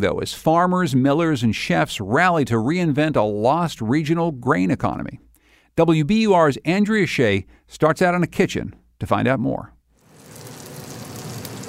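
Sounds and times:
speech: 0.0s - 9.8s
cornbread sizzling in melted butter in a pan: 10.0s - 11.6s.

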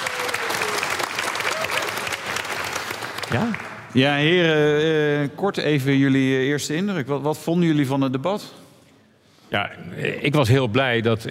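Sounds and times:
audience applause: 0.0s - 4.0s
speech: 3.3s - 8.6s, 9.5s - 11.2s.

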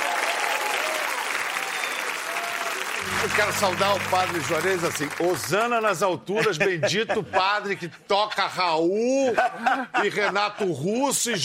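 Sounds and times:
audience applause: 0.0s - 6.0s
speech: 3.0s - 11.4s
laughter: 6.4s - 7.6s, 9.2s - 10.8s.

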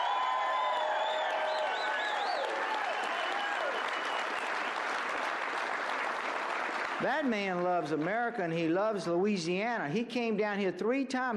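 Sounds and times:
audience applause: 0.0s - 8.0s
speech: 7.0s - 11.3s.

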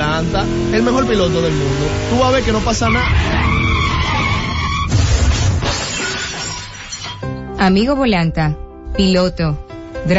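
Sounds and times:
speeding car's tires screeching as it skids at a crossing: 0.0s - 5.5s
speech: 0.2s - 3.7s, 7.6s - 10.1s.

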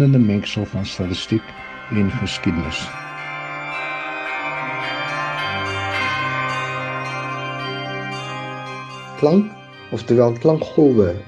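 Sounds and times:
speech: 0.0s - 3.0s, 9.2s - 11.2s
church bells ringing: 0.0s - 11.2s.

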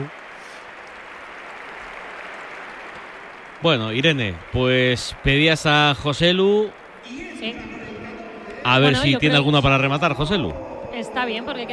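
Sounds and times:
light stadium applause: 0.0s - 11.7s
speech: 3.6s - 7.8s, 8.6s - 11.7s.

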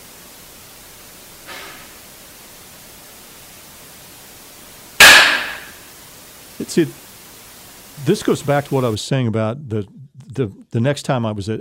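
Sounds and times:
knock recorded during a ghost hunt at Edinburgh Manor: 5.0s - 5.8s
speech: 6.6s - 7.0s, 8.0s - 11.6s.

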